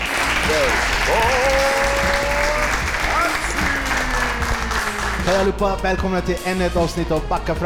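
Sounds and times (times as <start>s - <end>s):
live audience applause: 0.0s - 5.6s
speech: 5.3s - 7.6s.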